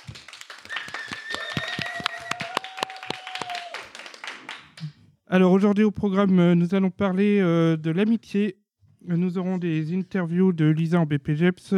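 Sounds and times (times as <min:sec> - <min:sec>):
audience applause: 0:00.0 - 0:04.8
speech: 0:05.3 - 0:11.7.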